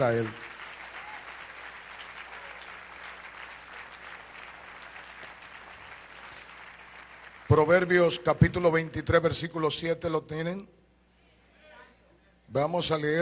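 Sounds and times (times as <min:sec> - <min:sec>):
speech: 0:00.0 - 0:00.4, 0:07.5 - 0:10.8, 0:12.5 - 0:13.2
audience applause in church: 0:00.0 - 0:07.9.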